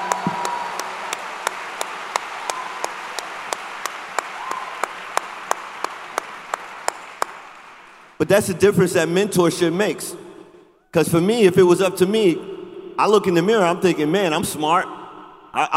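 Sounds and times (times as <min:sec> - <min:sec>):
audience applause: 0:00.0 - 0:08.2
speech: 0:08.2 - 0:10.2, 0:10.9 - 0:15.0, 0:15.6 - 0:15.7.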